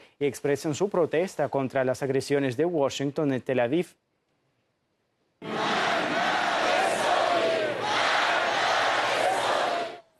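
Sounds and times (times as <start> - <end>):
speech: 0.2 - 4.0
massive crowd in Tehran streets shouting and chanting: 5.4 - 10.0.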